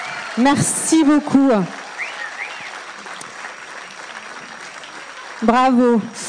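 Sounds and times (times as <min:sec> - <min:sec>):
audience applause: 0:00.0 - 0:06.2
speech: 0:00.4 - 0:01.8, 0:05.4 - 0:06.2.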